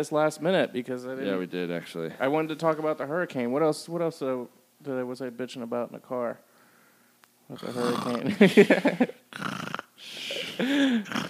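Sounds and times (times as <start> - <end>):
speech: 0.0 - 6.5, 7.5 - 11.2
person imitating snoring: 7.6 - 8.4, 9.3 - 11.2.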